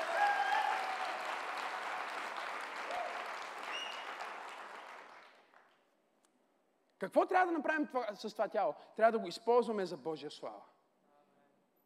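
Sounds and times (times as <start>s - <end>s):
audience clapping hands: 0.0s - 5.9s
speech: 7.0s - 10.7s.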